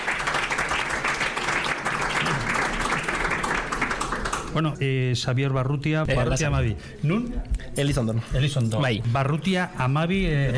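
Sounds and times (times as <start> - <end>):
applause: 0.0 - 4.7
speech: 4.6 - 10.5.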